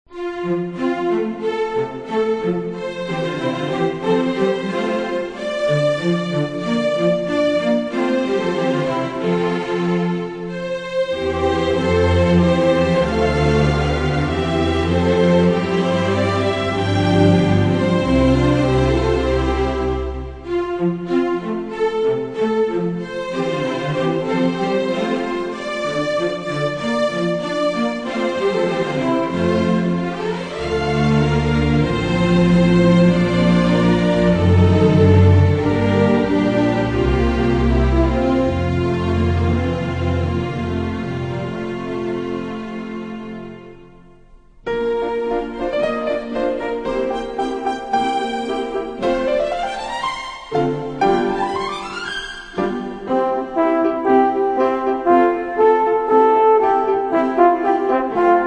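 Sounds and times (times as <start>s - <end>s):
orchestra: 0.1s - 58.4s.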